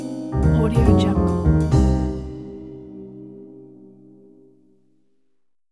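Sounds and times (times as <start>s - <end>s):
jazz logo jingle: 0.3s - 3.6s.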